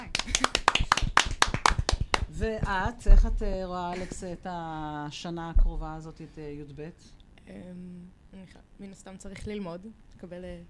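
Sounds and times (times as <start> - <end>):
small group clapping hands: 0.0 - 2.8
speech: 2.4 - 10.6.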